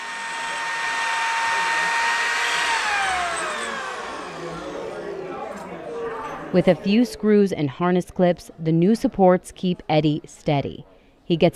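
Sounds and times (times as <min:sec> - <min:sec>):
power drill drilling through metal wheelchair frame: 0:00.0 - 0:05.2
speech: 0:06.5 - 0:11.5.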